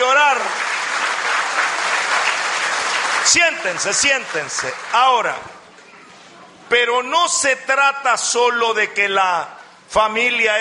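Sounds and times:
audience applause: 0.0s - 5.5s
speech: 3.3s - 5.6s, 6.7s - 10.5s.

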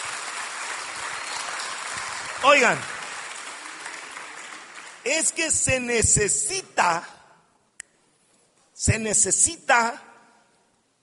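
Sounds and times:
audience applause: 0.0s - 5.4s
speech: 2.4s - 2.9s, 5.0s - 7.2s, 8.8s - 10.1s.

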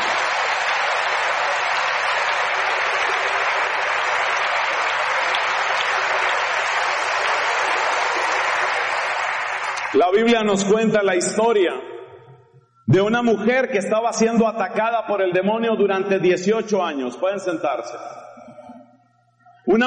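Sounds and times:
audience applauding: 0.0s - 10.7s
speech: 10.0s - 11.9s, 12.9s - 18.2s, 19.7s - 19.8s.

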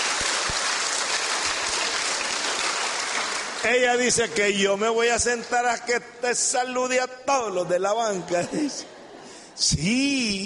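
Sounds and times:
applause: 0.0s - 4.5s
speech: 3.6s - 8.9s, 9.6s - 10.4s
laughter: 7.9s - 9.8s.

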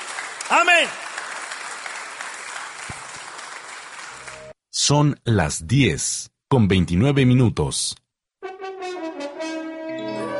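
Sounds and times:
audience applause: 0.0s - 4.6s
speech: 0.5s - 1.0s, 4.8s - 8.0s.

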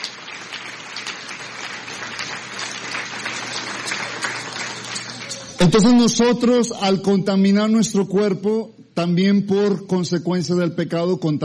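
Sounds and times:
audience applauding: 0.0s - 6.1s
speech: 5.6s - 11.4s.

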